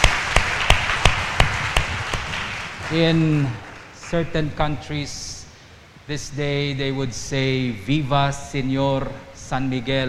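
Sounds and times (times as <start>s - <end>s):
audience clapping hands in unison: 0.0s - 4.2s
scattered audience applause: 0.0s - 4.6s
speech: 2.9s - 5.3s, 6.1s - 10.0s.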